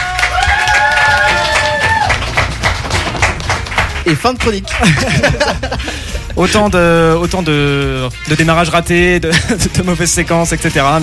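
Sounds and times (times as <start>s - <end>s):
people applauding: 0.0s - 5.6s
speech: 4.1s - 11.0s
laughter: 4.5s - 6.6s, 9.3s - 9.7s.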